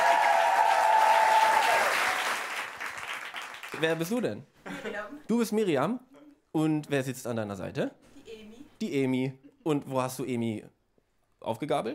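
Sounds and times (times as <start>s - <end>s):
audience applause for a performer: 0.0s - 4.0s
speech: 3.8s - 8.1s, 8.8s - 10.8s, 11.4s - 11.9s.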